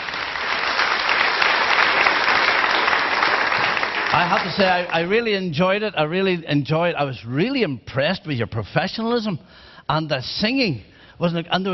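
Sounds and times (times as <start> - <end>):
audience applause: 0.0 - 5.1
speech: 4.2 - 11.7.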